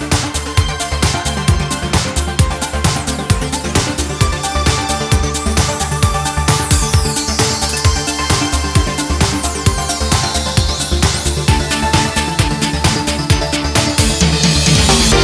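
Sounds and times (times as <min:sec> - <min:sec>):
menu background music: 0:00.2 - 0:15.2.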